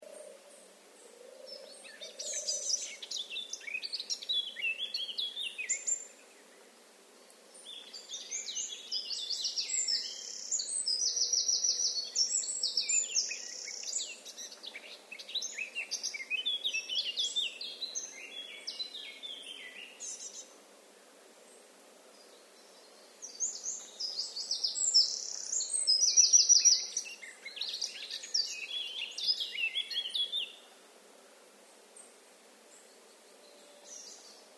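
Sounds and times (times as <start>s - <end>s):
faint hiss: 0.0s - 34.5s
Eurasian blackcap song: 1.5s - 6.4s, 7.5s - 20.6s, 22.6s - 30.7s.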